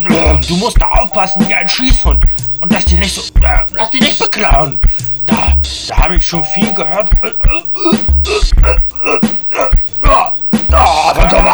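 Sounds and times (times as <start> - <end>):
speech: 0.0 - 9.8
bad cough: 6.9 - 10.4.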